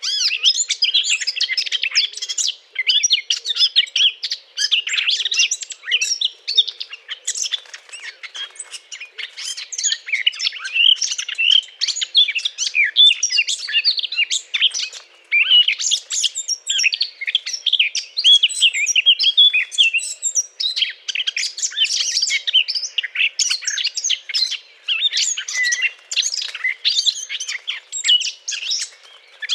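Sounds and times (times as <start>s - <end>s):
Eurasian blackcap courtship song: 0.0s - 29.5s.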